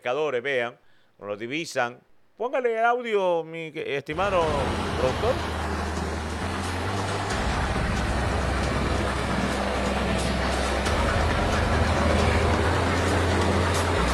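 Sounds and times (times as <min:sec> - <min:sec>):
speech: 0:00.0 - 0:05.6
fishing boat engine drone: 0:04.1 - 0:14.1.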